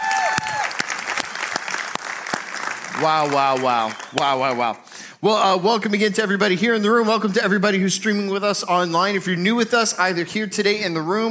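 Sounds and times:
church audience applauding the worship band: 0:00.0 - 0:04.6
speech: 0:03.0 - 0:11.2.

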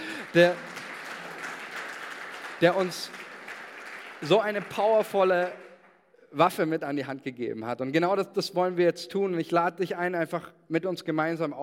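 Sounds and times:
audience applause: 0:00.0 - 0:05.9
speech: 0:00.4 - 0:00.7, 0:02.6 - 0:03.2, 0:04.2 - 0:05.7, 0:06.3 - 0:11.6.

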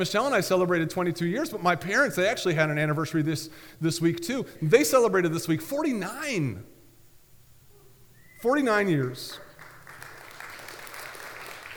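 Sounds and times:
speech: 0:00.0 - 0:06.7, 0:08.4 - 0:09.4
tepid audience applause: 0:09.5 - 0:11.7.

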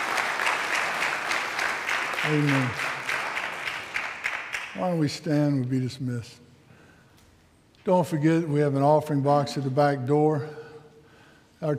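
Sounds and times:
audience hand clapping: 0:00.0 - 0:05.0
speech: 0:02.3 - 0:02.9, 0:04.8 - 0:06.4, 0:07.9 - 0:10.6, 0:11.6 - 0:11.7.

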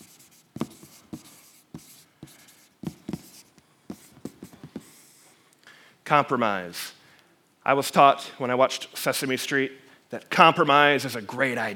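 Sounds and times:
marker writing a word on a board: 0:00.0 - 0:05.2
speech: 0:06.1 - 0:07.0, 0:07.7 - 0:11.7.

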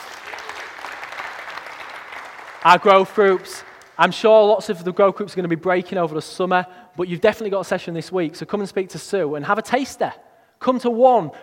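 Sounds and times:
audience applause: 0:00.0 - 0:04.0
speech: 0:02.6 - 0:11.4.

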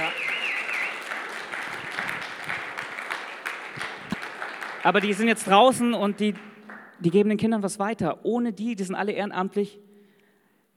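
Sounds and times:
audience applause: 0:00.0 - 0:06.9
speech: 0:04.8 - 0:09.9.

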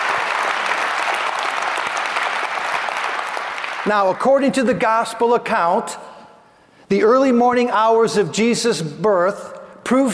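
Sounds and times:
crowd applauding: 0:00.0 - 0:04.4
speech: 0:03.8 - 0:06.1, 0:06.9 - 0:10.1.

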